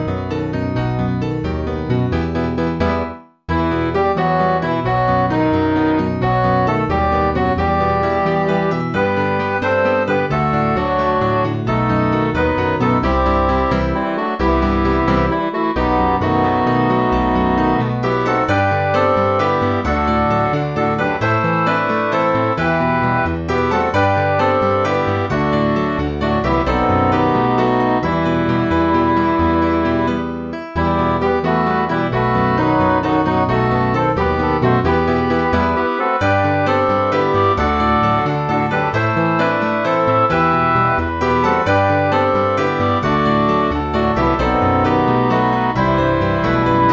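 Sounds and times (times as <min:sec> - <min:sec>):
holy English MIDI music: 0:00.1 - 0:46.8.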